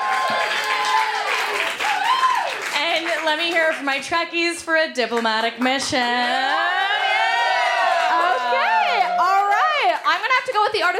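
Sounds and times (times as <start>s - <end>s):
people whooping and cheering: 0.0s - 2.7s, 6.4s - 10.0s
audience applause: 0.0s - 3.8s, 6.3s - 10.2s
speech: 3.3s - 6.8s, 10.0s - 10.9s.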